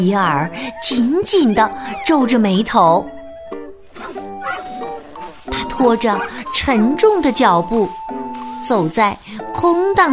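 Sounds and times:
speech: 0.0s - 3.2s, 5.5s - 8.0s, 8.6s - 10.1s
small dog yipping barks: 0.8s - 2.4s, 4.0s - 7.0s.

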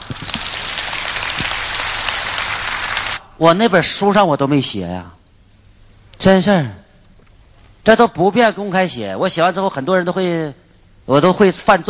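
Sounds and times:
audience applause: 0.0s - 3.2s
speech: 3.4s - 5.2s, 6.2s - 6.8s, 7.8s - 11.8s.

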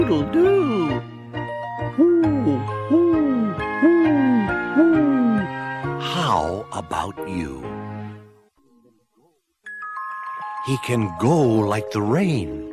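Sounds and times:
speech: 0.1s - 1.1s, 6.8s - 7.8s, 10.6s - 12.7s
voice imitating owl hoots: 1.9s - 6.2s.

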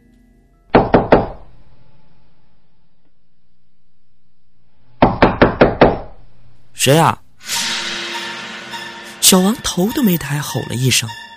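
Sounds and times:
loud knocking on a door: 0.7s - 1.4s, 5.0s - 6.1s
speech: 6.8s - 7.6s, 9.3s - 11.3s.

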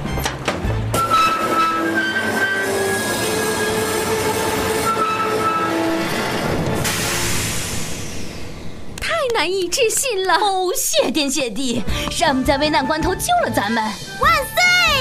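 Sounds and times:
train running on rails: 0.0s - 11.0s
speech: 9.4s - 15.0s.

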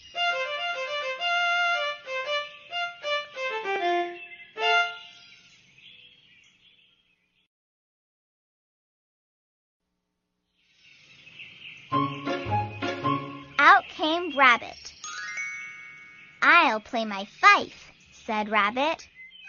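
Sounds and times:
fiddle playing: 0.0s - 5.2s, 11.9s - 13.7s
speech: 14.4s - 15.0s, 16.8s - 19.2s.

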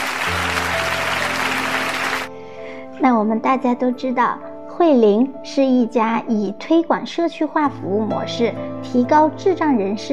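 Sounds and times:
audience applause: 0.0s - 2.3s
speech: 3.0s - 10.1s.

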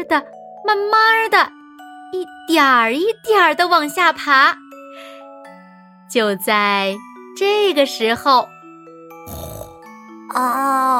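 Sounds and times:
speech: 0.0s - 5.1s, 6.1s - 8.5s, 10.3s - 10.9s
piglets snoring and yawning awake: 9.2s - 10.5s.

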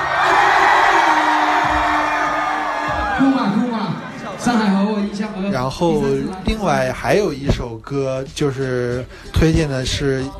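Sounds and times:
audience screaming and cheering: 0.0s - 4.4s
speech: 5.4s - 10.3s.

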